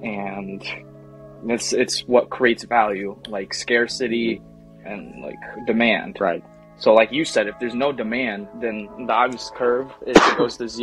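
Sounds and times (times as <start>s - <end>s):
speech: 0.0s - 10.8s
sneeze: 10.2s - 10.5s.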